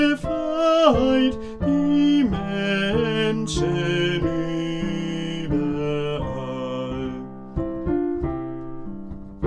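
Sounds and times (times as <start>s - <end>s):
soprano singing a verse: 0.0s - 8.2s.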